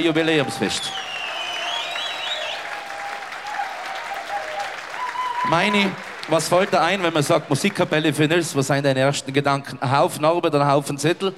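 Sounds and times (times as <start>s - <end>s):
speech: 0.0s - 1.2s, 5.4s - 11.3s
audience applause: 0.0s - 8.5s.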